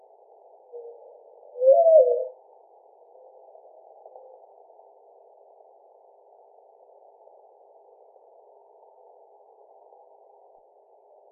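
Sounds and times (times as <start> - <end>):
mourning dove cooing: 0.6 - 2.4.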